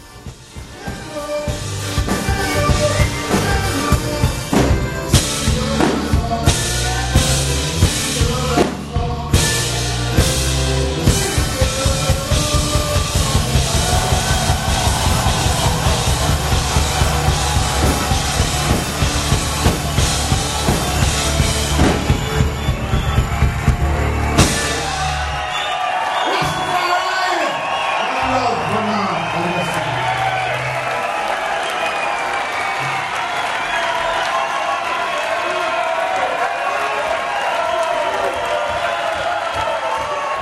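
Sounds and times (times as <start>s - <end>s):
concert audience cheering and shouting: 0.0s - 40.4s
rhythmic clapping or stomping: 11.8s - 24.9s, 30.8s - 40.4s.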